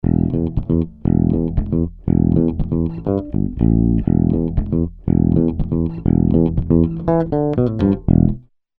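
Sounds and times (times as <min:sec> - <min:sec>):
electric bass without Tube Tech HLT 2A: 0:00.0 - 0:08.5.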